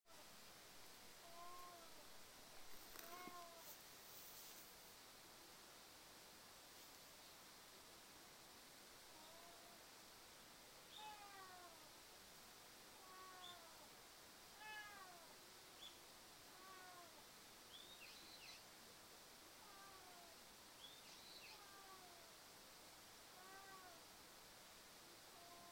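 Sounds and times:
background hiss: 0.1 - 25.7
domestic cat meowing: 1.2 - 2.0, 3.0 - 3.7, 10.9 - 11.8, 13.0 - 13.8, 14.6 - 15.3, 16.5 - 17.2, 19.6 - 20.3, 23.4 - 24.0
high rustling: 2.6 - 5.1.

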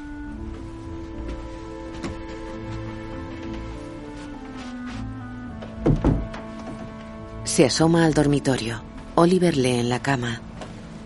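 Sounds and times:
door closing shut: 5.5 - 7.0
speech: 7.6 - 10.5.

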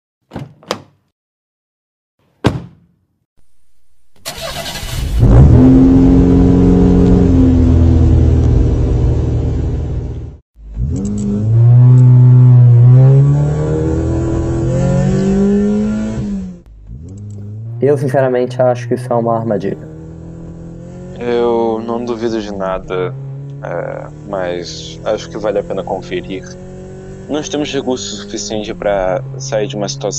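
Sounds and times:
car door thuds: 2.4 - 2.9
car engine starting and driving off: 3.4 - 30.1
speech: 18.0 - 19.9, 22.6 - 26.6, 27.3 - 30.1.

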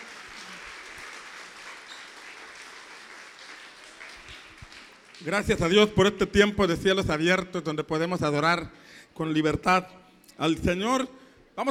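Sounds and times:
audience applause: 0.0 - 5.3
speech: 5.2 - 11.6.

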